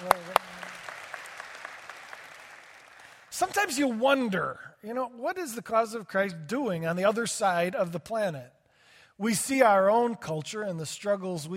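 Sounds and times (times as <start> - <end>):
scattered clapping from a crowd: 0.0 - 4.3
speech: 3.4 - 8.6, 9.2 - 11.5.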